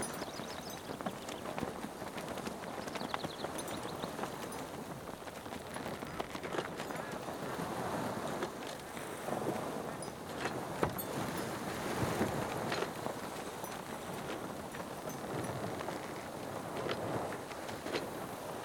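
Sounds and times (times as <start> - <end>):
sailboat on a lake: 0.0 - 18.6.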